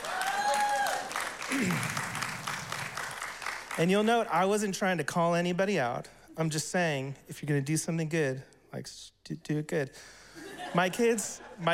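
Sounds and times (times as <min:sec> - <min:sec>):
vocal whoop: 0:00.0 - 0:01.9
thin scattered applause from an audience: 0:00.0 - 0:04.1
speech: 0:01.5 - 0:02.1, 0:03.8 - 0:11.7.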